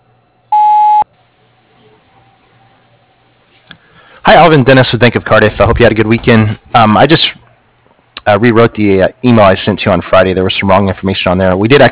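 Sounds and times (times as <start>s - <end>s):
voicemail beep: 0.5s - 1.0s
speech: 4.3s - 7.3s, 8.2s - 11.9s.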